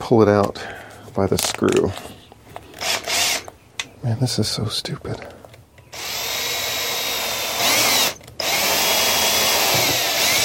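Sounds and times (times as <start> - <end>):
speech: 0.1 - 2.2, 4.0 - 5.4
power drill boring pilot hole into plastic: 2.7 - 3.5, 5.9 - 10.4.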